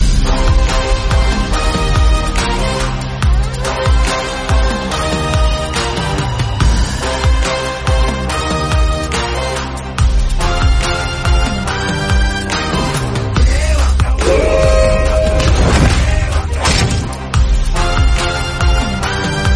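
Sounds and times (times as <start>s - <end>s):
background music: 0.0s - 19.5s.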